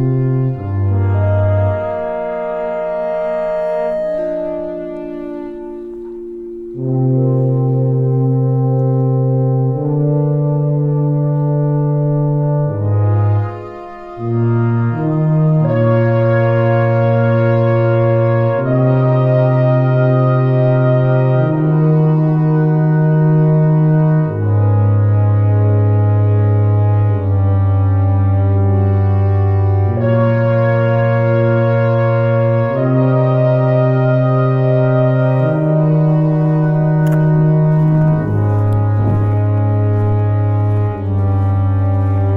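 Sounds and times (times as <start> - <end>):
brass quintet playing slow sustained chords: 0.0 - 42.3.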